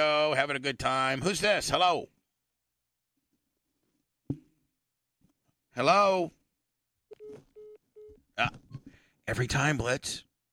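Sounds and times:
speech: 0.0s - 2.2s, 5.8s - 6.4s, 8.4s - 8.6s, 9.3s - 10.3s
phone dialing tones on a call: 7.1s - 8.2s.

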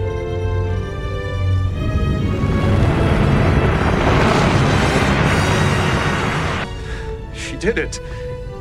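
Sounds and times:
tonal hum: 0.8s - 6.8s
deep roaring planet-surface eruption destroying the Borg ship in Star Trek: 1.6s - 7.1s
speech: 7.6s - 8.2s.

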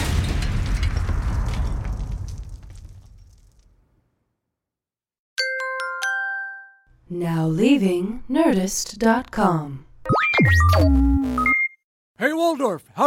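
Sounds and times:
booming explosion: 0.0s - 4.1s
speech: 7.1s - 11.6s, 12.2s - 13.0s.

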